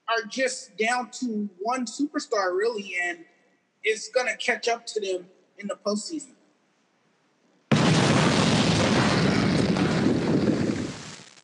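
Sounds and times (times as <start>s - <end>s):
speech: 0.2s - 6.4s
dynamite explosion sound effect: 7.7s - 11.4s.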